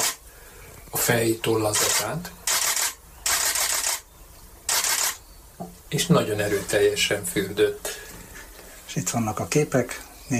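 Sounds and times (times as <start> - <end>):
camera shutter clicking: 0.0 - 0.2, 1.8 - 4.1, 4.7 - 5.2
faint hiss: 0.0 - 10.3
speech: 1.1 - 2.4, 5.6 - 8.0, 9.0 - 10.3.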